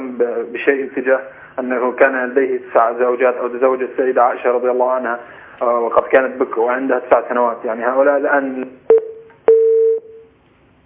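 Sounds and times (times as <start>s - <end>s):
speech: 0.2s - 8.8s
telephone line tone on a radio call-in show: 8.9s - 10.3s.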